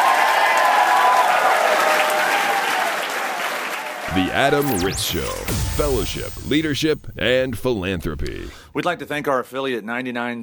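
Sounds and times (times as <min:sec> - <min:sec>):
audience applause: 0:00.0 - 0:04.1
speech: 0:04.2 - 0:10.4.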